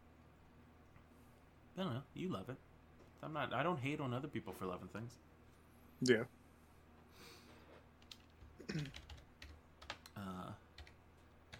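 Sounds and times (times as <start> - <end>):
speech: 1.8 - 5.3, 6.0 - 6.4, 8.7 - 9.0
computer keyboard typing: 8.0 - 11.5.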